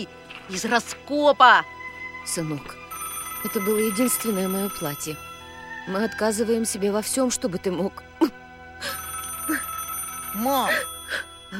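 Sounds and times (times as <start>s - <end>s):
speech: 0.0s - 2.8s, 3.4s - 8.9s, 10.4s - 11.5s
telephone ringing with electronic bursts: 2.9s - 5.9s, 8.8s - 11.5s.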